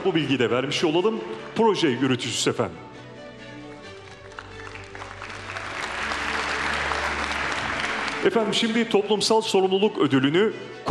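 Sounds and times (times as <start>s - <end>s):
speech: 0.0s - 2.9s, 8.2s - 10.8s
audience applause at a university award ceremony: 4.0s - 8.8s.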